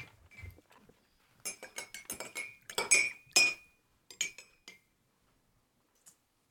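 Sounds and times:
metal spoons clinking in ceramic coffee cups: 0:01.4 - 0:04.8.

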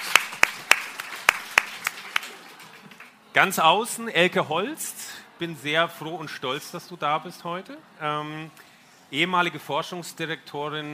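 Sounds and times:
audience applause: 0:00.0 - 0:03.2
speech: 0:03.4 - 0:10.9.

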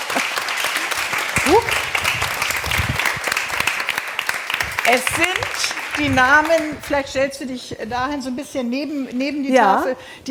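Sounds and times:
audience applause: 0:00.0 - 0:07.0
speech: 0:04.9 - 0:10.2.

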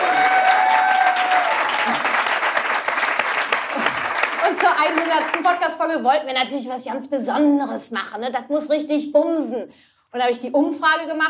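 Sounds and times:
applause: 0:00.0 - 0:05.7
speech: 0:04.8 - 0:11.2.

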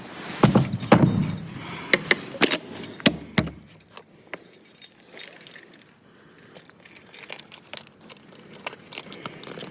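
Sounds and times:
heavy door of the Grey Tower falling shut: 0:00.5 - 0:02.3, 0:02.9 - 0:03.7.

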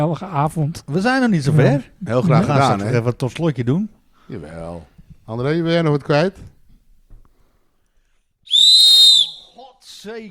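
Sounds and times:
speech: 0:00.0 - 0:06.5, 0:10.0 - 0:10.2
whistle: 0:08.4 - 0:09.6.

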